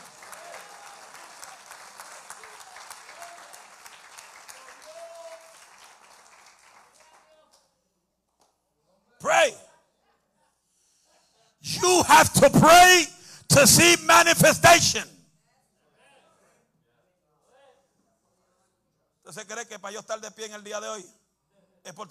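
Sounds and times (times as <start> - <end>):
audience applauding: 0.0 - 7.5
speech: 9.4 - 9.6, 12.2 - 15.1, 19.8 - 21.2, 21.8 - 22.0.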